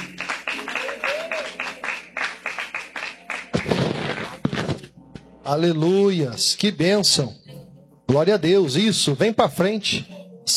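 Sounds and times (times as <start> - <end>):
audience applauding: 0.0 - 4.6
speech: 5.5 - 7.4, 8.1 - 10.5.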